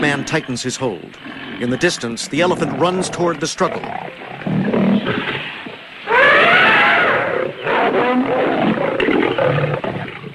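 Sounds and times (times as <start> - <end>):
speech: 0.0 - 5.4
lion snarling and roaring in a fight scene in an audio drama about Tarzan: 1.2 - 10.3.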